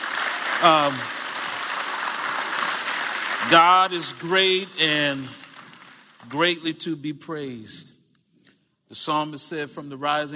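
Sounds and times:
audience clapping hands: 0.0s - 6.7s
speech: 0.6s - 1.2s, 3.4s - 5.4s, 6.2s - 8.0s, 8.9s - 10.3s.

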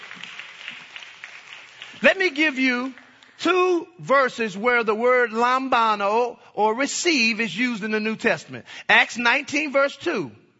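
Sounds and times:
audience clapping: 0.0s - 3.5s
speech: 2.2s - 10.4s.

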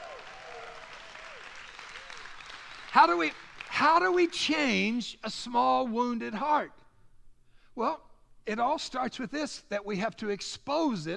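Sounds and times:
audience applause: 0.0s - 4.2s
speech: 2.9s - 6.8s, 7.8s - 11.1s.

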